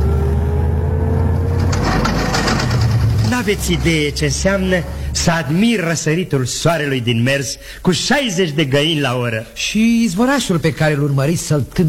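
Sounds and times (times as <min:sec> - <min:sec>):
small car running: 0:00.0 - 0:05.2
speech: 0:03.4 - 0:11.8.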